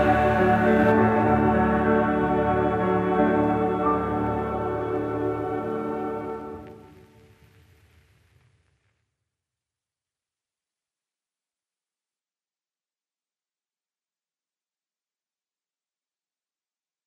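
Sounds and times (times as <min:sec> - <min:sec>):
women's chorale singing Christmas music: 0:00.0 - 0:05.6.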